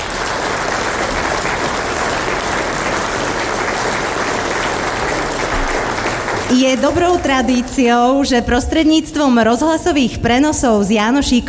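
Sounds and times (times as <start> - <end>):
audience applause: 0.0 - 7.7
speech: 6.5 - 11.4.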